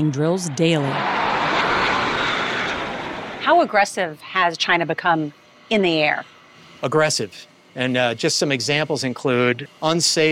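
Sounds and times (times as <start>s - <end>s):
speech: 0.0s - 1.6s, 3.4s - 10.3s
FA-18 fighter jet flying: 0.0s - 7.2s.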